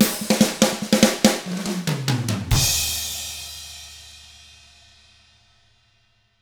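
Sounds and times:
rock drums in 6/8: 0:00.0 - 0:04.8.

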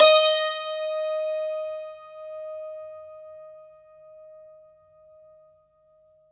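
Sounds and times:
santoor: 0:00.0 - 0:03.6.

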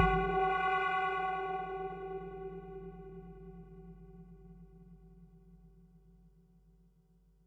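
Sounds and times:
percussion: 0:00.0 - 0:02.5.

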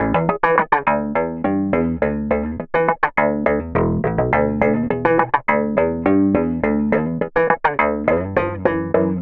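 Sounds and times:
processed slap electric bass: 0:00.0 - 0:09.2.

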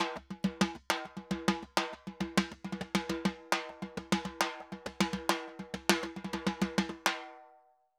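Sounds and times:
timba Latin drums and percussion: 0:00.0 - 0:07.5.

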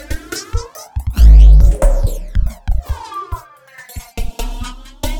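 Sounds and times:
808 drum machine loop: 0:01.2 - 0:02.6.

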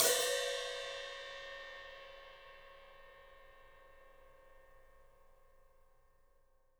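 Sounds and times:
Zildjian HT cymbal: 0:00.0 - 0:05.2.

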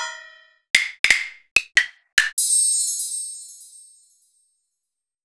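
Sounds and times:
Roland BK-5 keyboard percussion: 0:00.8 - 0:04.3.

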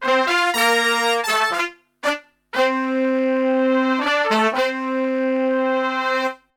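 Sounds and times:
brass: 0:00.0 - 0:06.5.

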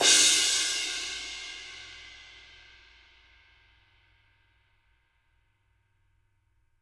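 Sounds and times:
dark crash cymbal: 0:00.0 - 0:03.6.

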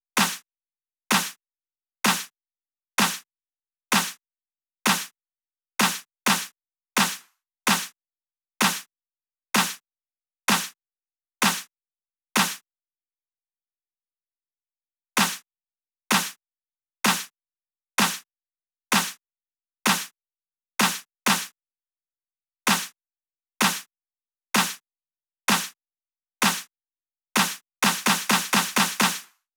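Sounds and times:
snare drum: 0:00.2 - 0:00.4, 0:01.1 - 0:01.4, 0:02.1 - 0:02.3, 0:03.0 - 0:03.2, 0:03.9 - 0:04.2, 0:04.9 - 0:05.1, 0:05.8 - 0:07.9, 0:08.6 - 0:08.9, 0:09.6 - 0:09.8, 0:10.5 - 0:10.7, 0:11.4 - 0:11.7, 0:12.4 - 0:12.6, 0:15.2 - 0:15.4, 0:16.1 - 0:16.4, 0:17.1 - 0:17.3, 0:18.0 - 0:18.2, 0:18.9 - 0:19.2, 0:19.9 - 0:20.1, 0:20.8 - 0:21.5, 0:22.7 - 0:22.9, 0:23.6 - 0:23.8, 0:24.6 - 0:24.8, 0:25.5 - 0:25.7, 0:26.4 - 0:26.7, 0:27.4 - 0:29.4.

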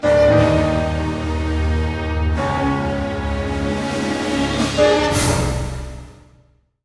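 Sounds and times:
full orchestra: 0:00.0 - 0:06.3.

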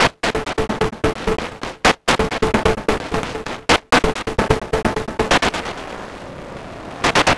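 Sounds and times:
crunchy beats: 0:00.0 - 0:05.6.

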